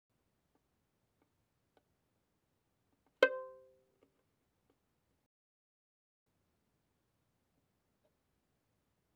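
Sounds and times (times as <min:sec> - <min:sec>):
violin pizzicato mezzo forte on the D string: 0:03.2 - 0:03.7.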